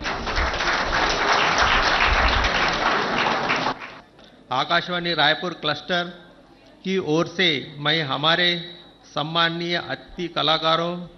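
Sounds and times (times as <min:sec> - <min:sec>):
audience applause: 0:00.0 - 0:04.0
speech: 0:04.6 - 0:06.2, 0:06.8 - 0:11.1.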